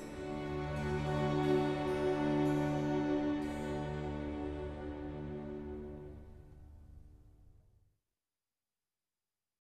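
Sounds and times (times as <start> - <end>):
strings and harpsichord playing a concerto adagio in G major: 0.0 - 6.2.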